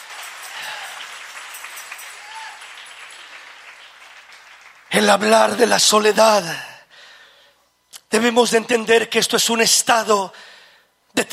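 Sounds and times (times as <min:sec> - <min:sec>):
audience applause: 0:00.0 - 0:05.6
speech: 0:05.0 - 0:06.7, 0:08.1 - 0:10.5, 0:11.1 - 0:11.3.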